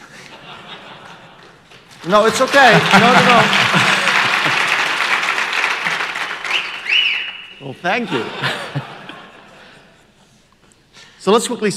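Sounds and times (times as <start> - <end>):
laughter: 0.0 - 6.6, 7.8 - 10.8
audience clapping: 0.8 - 7.6
speech: 2.0 - 3.8, 7.6 - 8.9, 11.3 - 11.7.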